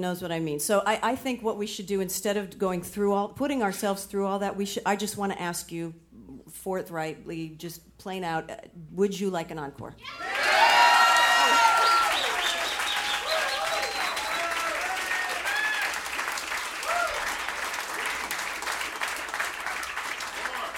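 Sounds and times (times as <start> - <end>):
speech: 0.0 - 6.0, 6.6 - 10.6
audience applause: 10.2 - 20.7.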